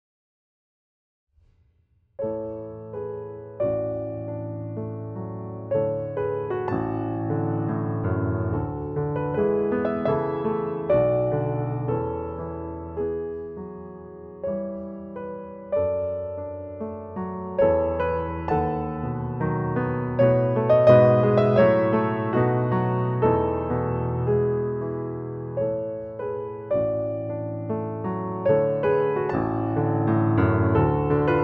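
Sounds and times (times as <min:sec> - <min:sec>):
Pianoteq piano notes: 0:02.2 - 0:31.4.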